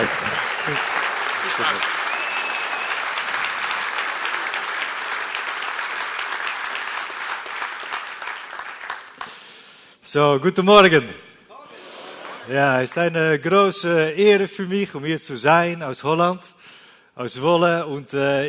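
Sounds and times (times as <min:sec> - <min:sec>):
thunderous applause from large audience: 0:00.0 - 0:09.5
speech: 0:00.7 - 0:00.9, 0:01.6 - 0:01.9, 0:10.1 - 0:11.3, 0:12.5 - 0:16.6, 0:17.2 - 0:18.4.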